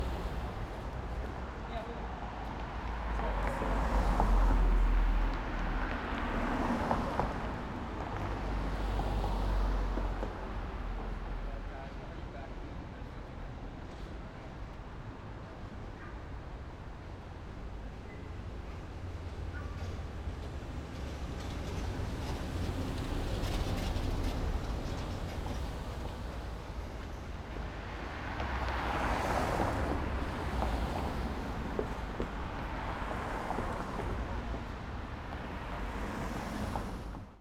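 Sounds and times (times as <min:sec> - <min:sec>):
city cars passing: 0:00.0 - 0:12.6, 0:21.1 - 0:37.3
pedestrians in a city: 0:00.0 - 0:37.3.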